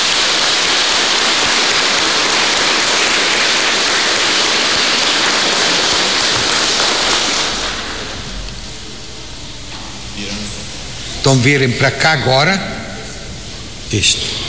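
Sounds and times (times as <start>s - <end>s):
applause for children: 0.0s - 8.3s
speech: 11.2s - 12.7s, 13.9s - 14.4s.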